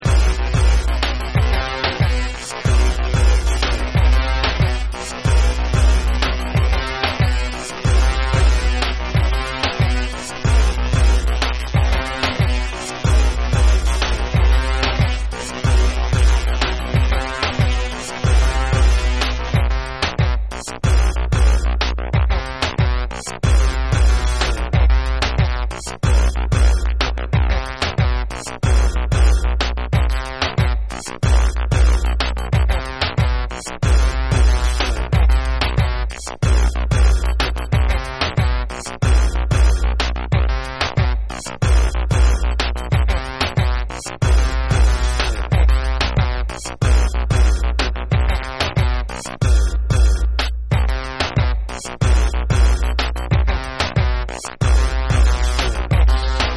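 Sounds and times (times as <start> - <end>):
instrumental music: 0.0 - 56.5.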